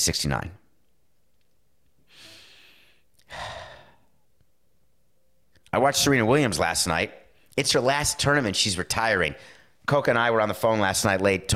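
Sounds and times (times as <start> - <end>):
speech: 0.0 - 0.6, 5.7 - 11.5
person breathing in before speaking: 2.1 - 4.2.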